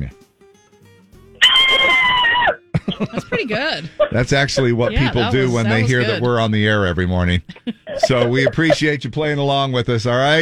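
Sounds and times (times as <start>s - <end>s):
speech: 0.0s - 0.2s, 2.9s - 10.4s
scary Halloween scream: 1.4s - 2.6s
laughter: 1.7s - 6.4s, 7.4s - 8.9s.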